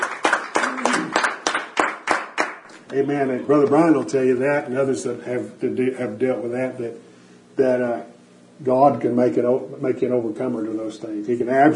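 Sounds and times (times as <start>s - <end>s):
church congregation clapping in a steady rhythm: 0.0s - 3.7s
speech: 2.9s - 11.7s.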